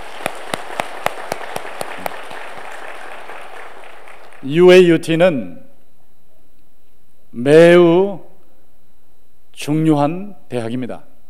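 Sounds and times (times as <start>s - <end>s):
audience applause: 0.0s - 4.4s
speech: 4.4s - 5.6s, 7.4s - 8.2s, 9.6s - 11.1s.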